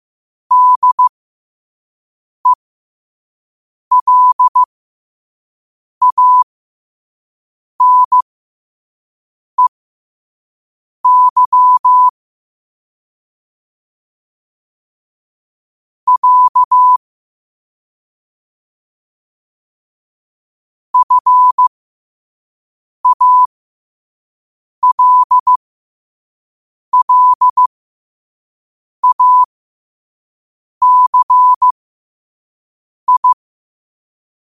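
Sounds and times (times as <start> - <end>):
morse code at 5 wpm: 0.5 - 1.1, 3.9 - 4.7, 6.0 - 6.4, 7.8 - 8.2, 11.1 - 12.1, 16.1 - 17.0, 21.0 - 21.7, 23.0 - 23.5, 24.8 - 25.6, 26.9 - 27.7, 29.0 - 29.5, 30.8 - 31.8, 33.1 - 33.4.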